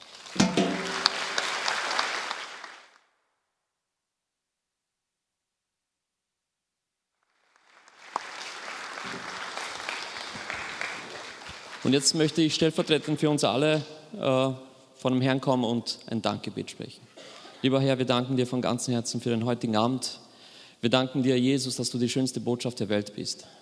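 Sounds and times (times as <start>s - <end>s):
audience applause: 0.0s - 3.0s, 7.5s - 12.3s
speech: 11.9s - 20.2s, 20.8s - 23.6s.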